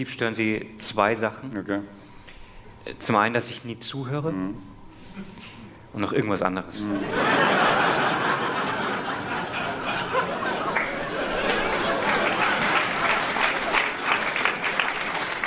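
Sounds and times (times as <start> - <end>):
speech: 0.0 - 2.0, 2.8 - 8.1
laughter: 7.0 - 14.4
crowd murmur: 7.0 - 15.4
audience applause: 7.6 - 15.4.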